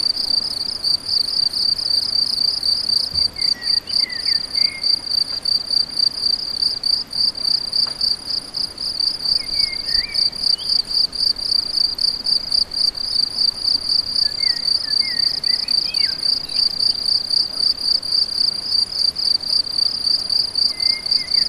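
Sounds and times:
crickets trilling: 0.0s - 21.4s.

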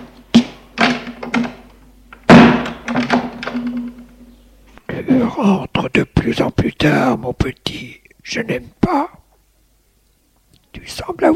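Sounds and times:
door closing: 0.0s - 4.4s
speech: 5.2s - 9.2s, 10.8s - 11.3s.

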